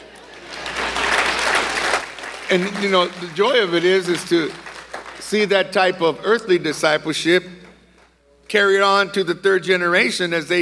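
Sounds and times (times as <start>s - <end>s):
audience applause: 0.0s - 5.2s
speech: 2.5s - 4.6s, 5.3s - 7.6s, 8.5s - 10.6s.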